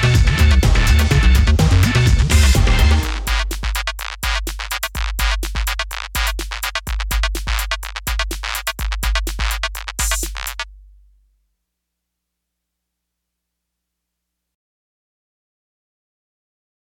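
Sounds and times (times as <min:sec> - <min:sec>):
techno music: 0:00.0 - 0:10.7.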